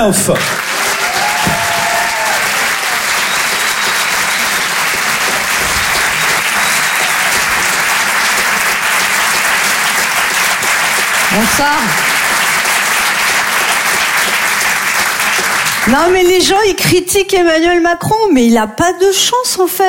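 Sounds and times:
speech: 0:00.0 - 0:00.8, 0:11.4 - 0:12.1, 0:15.9 - 0:19.8
crowd applauding warmly: 0:00.0 - 0:16.4
faint cheers: 0:00.6 - 0:07.8.

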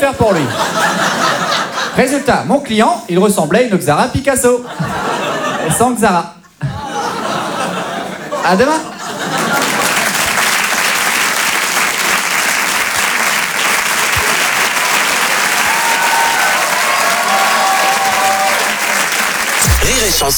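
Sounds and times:
speech: 0:00.0 - 0:00.8, 0:02.0 - 0:06.8, 0:08.4 - 0:08.9, 0:19.8 - 0:20.3
laughter: 0:00.0 - 0:02.5, 0:04.6 - 0:10.6
audience applause: 0:09.1 - 0:20.3
faint whistles or cheers: 0:15.6 - 0:18.9.

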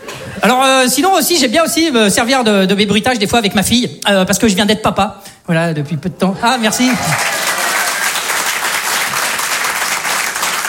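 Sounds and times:
speech: 0:00.4 - 0:07.4
audience applause: 0:06.6 - 0:10.6.

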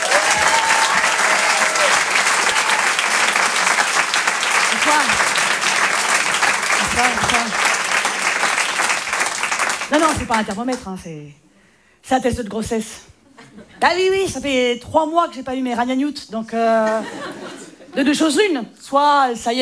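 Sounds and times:
audience shouts: 0:00.0 - 0:03.4
comedy club audience applause: 0:00.0 - 0:10.6
speech: 0:07.0 - 0:07.7, 0:09.9 - 0:11.4, 0:12.0 - 0:17.4, 0:18.0 - 0:19.5
laughter: 0:16.8 - 0:18.1.

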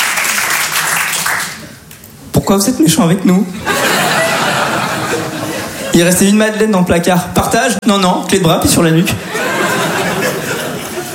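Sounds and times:
audience applause at a comedy show: 0:00.0 - 0:01.6
speech: 0:02.4 - 0:03.8, 0:06.0 - 0:09.4
laughter: 0:03.6 - 0:05.9, 0:09.2 - 0:11.1.

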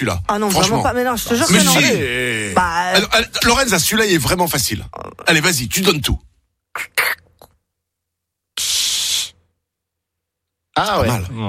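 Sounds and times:
speech: 0:00.0 - 0:07.2, 0:10.8 - 0:11.4
voice imitating a soda bottle being opened: 0:06.7 - 0:07.6.

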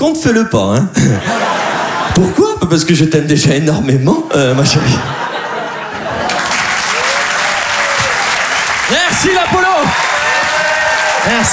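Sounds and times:
speech: 0:00.0 - 0:01.4, 0:02.1 - 0:05.4, 0:11.2 - 0:11.5
laughter: 0:01.0 - 0:02.6, 0:04.3 - 0:11.4
audience applause: 0:05.7 - 0:11.5.

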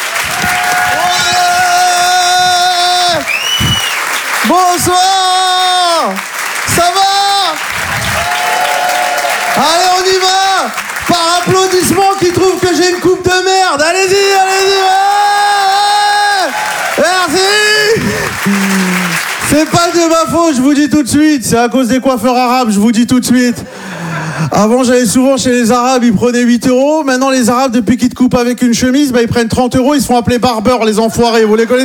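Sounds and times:
theatre audience applause and cheers at the Apollo Théâtre: 0:00.0 - 0:20.4
speech: 0:19.6 - 0:23.8, 0:24.5 - 0:31.8.

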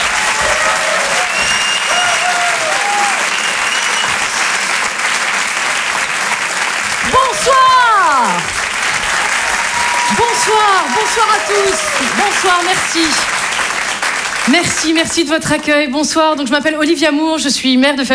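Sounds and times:
cheering voices: 0:00.0 - 0:15.0
audience applause welcoming a comedian onto the stage: 0:00.0 - 0:15.4
whistle-like calls: 0:01.2 - 0:04.4
speech: 0:10.4 - 0:13.4, 0:14.5 - 0:18.1.

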